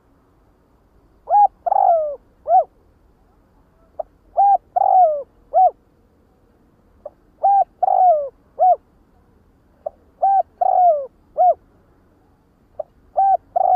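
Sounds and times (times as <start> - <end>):
spotted dove cooing: 1.2 - 2.8, 4.0 - 5.8, 7.0 - 8.8, 9.8 - 11.6, 12.8 - 13.7.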